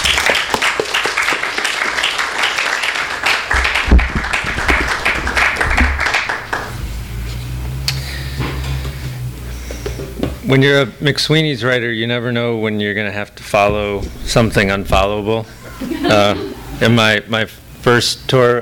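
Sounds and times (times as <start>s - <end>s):
audience applause welcoming an author at a book reading: 0.0s - 6.8s
low steady hum: 3.5s - 18.6s
speech: 10.5s - 18.6s
laughter: 15.5s - 16.9s.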